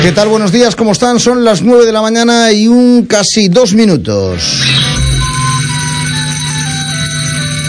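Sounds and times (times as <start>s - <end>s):
speech: 0.1s - 4.9s
low hum: 4.4s - 6.9s
electronic alarm marking start of radio programme: 4.5s - 7.6s.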